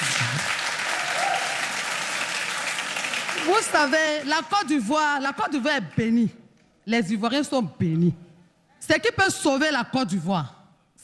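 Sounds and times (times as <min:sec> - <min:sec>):
applause: 0:00.0 - 0:04.9
speech: 0:03.4 - 0:08.2, 0:08.8 - 0:11.0.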